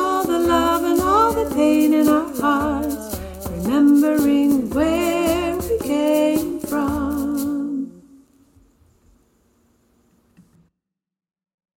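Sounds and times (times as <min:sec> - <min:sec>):
soprano singing: 0:00.0 - 0:08.2.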